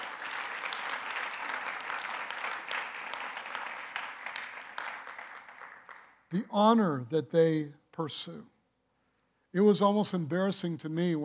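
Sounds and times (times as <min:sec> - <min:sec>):
audience applause: 0:00.0 - 0:06.2
speech: 0:06.3 - 0:08.5, 0:09.5 - 0:11.2.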